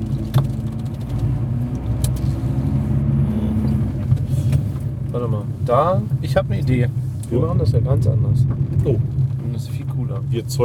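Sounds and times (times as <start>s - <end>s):
car engine driving past: 0.0s - 5.3s
speech: 5.2s - 10.6s.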